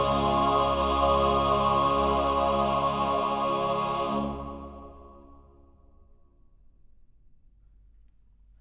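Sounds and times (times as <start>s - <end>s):
baroque choral work in D major: 0.0s - 5.9s.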